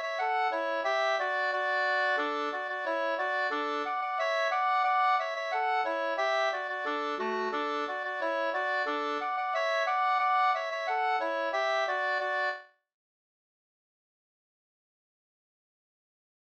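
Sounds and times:
polka music: 0.0 - 12.6.

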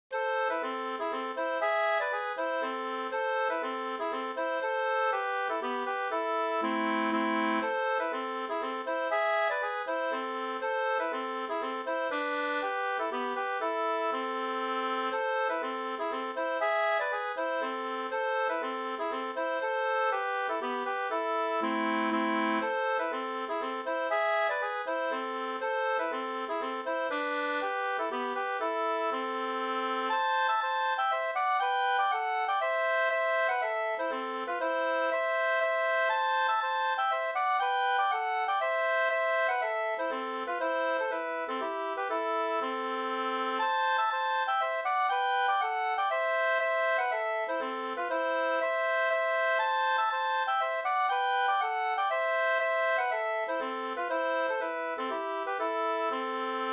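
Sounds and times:
Slangpolska folk dance tune: 0.1 - 56.7.

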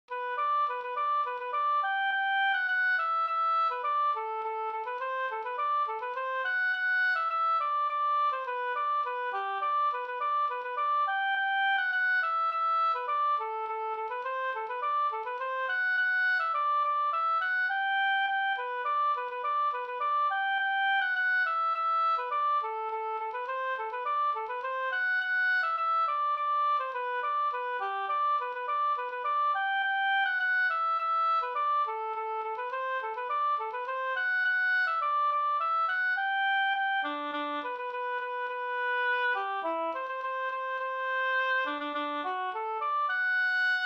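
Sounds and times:
polka music: 0.0 - 43.8.

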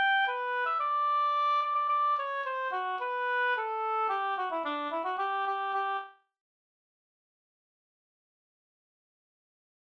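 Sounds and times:
polka music: 0.0 - 6.1.

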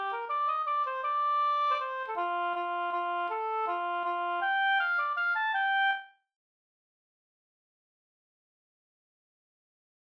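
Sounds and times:
bridal waltz music: 0.0 - 6.0.

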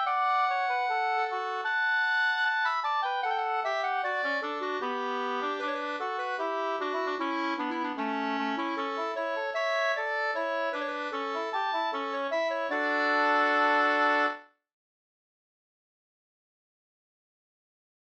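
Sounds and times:
Swedish skänklåt folk tune: 0.0 - 14.5.

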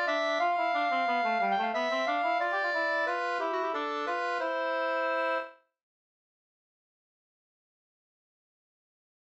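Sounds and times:
waltz in C major: 0.0 - 5.6.

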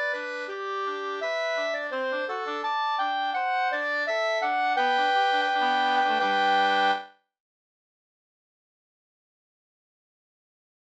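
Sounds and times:
wedding march music: 0.0 - 7.0.

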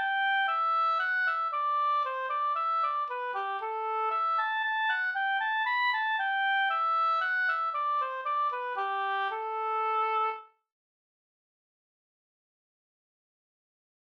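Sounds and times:
polska valspolska folk dance tune: 0.0 - 10.4.

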